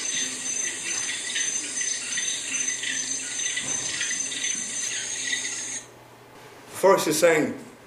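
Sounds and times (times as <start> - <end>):
frogs croaking in forest: 0.0 - 5.9
speech: 6.8 - 7.7.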